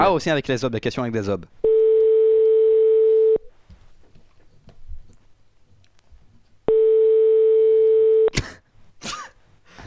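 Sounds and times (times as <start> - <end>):
speech: 0.0 - 1.7
telephone ringback tone on a call: 1.6 - 3.4, 6.7 - 8.3.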